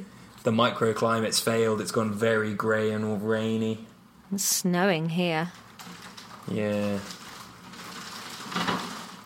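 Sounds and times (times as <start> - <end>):
speech: 0.4 - 7.2
wind-blown wire lashing against the house: 5.5 - 9.2.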